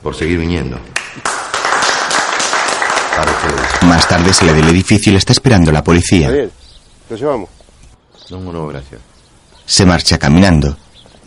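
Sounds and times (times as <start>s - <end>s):
speech: 0.0s - 1.3s, 3.2s - 7.6s, 8.3s - 9.1s, 9.7s - 11.2s
audience sustained applause: 1.0s - 5.0s.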